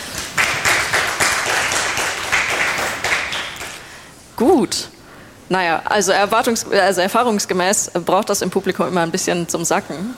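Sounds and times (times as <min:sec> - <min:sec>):
audience applause: 0:00.0 - 0:03.8
speech: 0:04.4 - 0:10.1.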